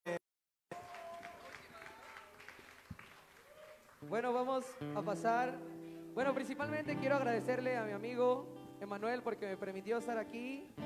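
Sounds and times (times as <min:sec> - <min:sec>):
audience applause: 0:00.7 - 0:04.9
speech: 0:04.0 - 0:10.8.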